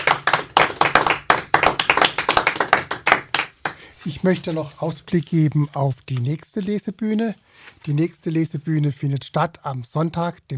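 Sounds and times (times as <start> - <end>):
audience applause: 0.0 - 3.8
speech: 4.0 - 10.5.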